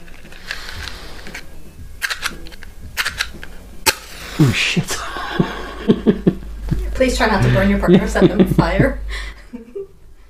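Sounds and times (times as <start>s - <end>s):
matchbox handled and rattled: 0.0s - 4.0s
low steady hum: 0.0s - 10.2s
speech: 4.4s - 5.1s, 5.8s - 6.4s, 7.0s - 9.2s
laughter: 4.4s - 9.9s.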